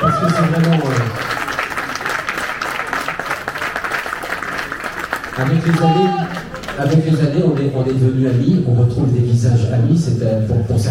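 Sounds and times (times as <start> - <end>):
audience applause: 0.0 - 8.3
speech: 5.4 - 10.8.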